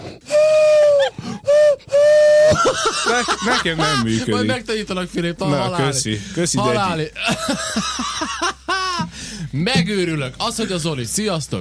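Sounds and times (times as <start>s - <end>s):
pigeon call blown through cupped hands: 0.2s - 2.8s
laughter: 2.4s - 4.6s, 7.1s - 9.1s
speech: 2.7s - 8.5s, 9.5s - 11.6s.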